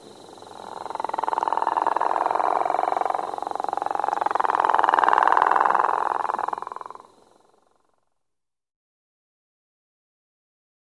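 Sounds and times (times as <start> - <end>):
Rana capito gopher frog calling: 0.0 - 7.8.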